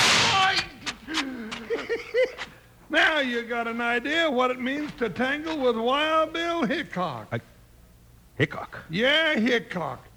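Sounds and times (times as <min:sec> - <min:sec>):
gunshots in an old-time radio western drama: 0:00.0 - 0:00.7
laughter: 0:01.1 - 0:02.6
speech: 0:02.3 - 0:07.5, 0:08.4 - 0:10.1.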